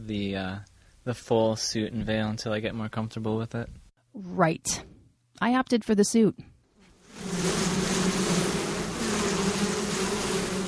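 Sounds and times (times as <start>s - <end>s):
speech: 0.0s - 6.5s
honeybees buzzing around an open hive: 6.9s - 10.6s.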